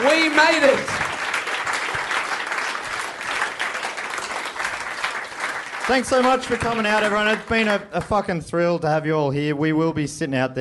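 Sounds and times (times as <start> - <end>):
audience applause for hosts of a live comedy show: 0.0 - 8.0
speech: 0.2 - 1.0, 5.9 - 10.5.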